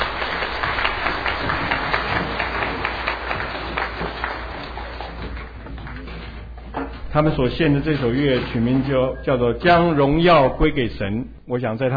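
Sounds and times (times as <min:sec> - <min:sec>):
audience applause for youth orchestra: 0:00.0 - 0:06.4
speech: 0:07.2 - 0:11.9.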